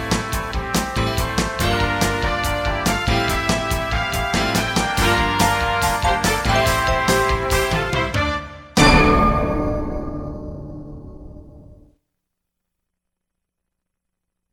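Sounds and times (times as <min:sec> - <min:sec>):
birthday party background music: 0:00.0 - 0:09.4.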